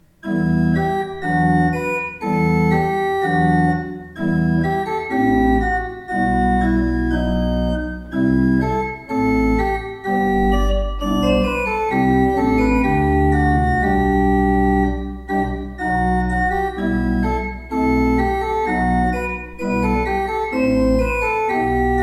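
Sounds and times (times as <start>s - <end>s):
Schuke Berlin pipe organ: 0.0s - 22.0s.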